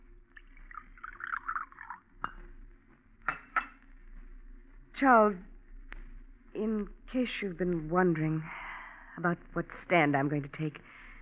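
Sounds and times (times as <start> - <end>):
coffee being poured into a cup: 0.3 - 2.5
speech: 5.0 - 5.5, 6.6 - 8.6, 9.2 - 10.9.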